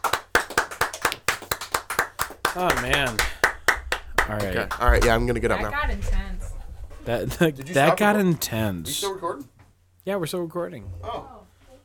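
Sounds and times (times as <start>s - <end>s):
clapping hands: 0.0s - 5.5s
speech: 2.6s - 3.3s, 4.3s - 6.2s, 7.1s - 11.4s.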